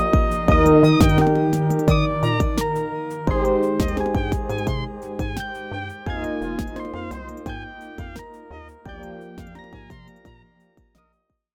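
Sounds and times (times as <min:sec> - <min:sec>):
menu music: 0:00.0 - 0:08.2.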